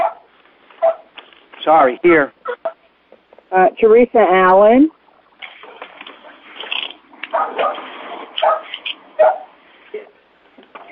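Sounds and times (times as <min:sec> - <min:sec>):
dog barking over call-quality line: 0:00.0 - 0:01.1, 0:07.3 - 0:09.6
speech: 0:01.6 - 0:02.6, 0:03.5 - 0:05.0.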